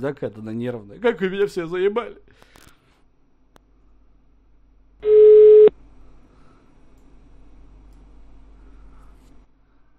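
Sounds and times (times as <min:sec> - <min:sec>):
speech: 0:00.0 - 0:02.7
telephone busy tone: 0:05.0 - 0:05.7.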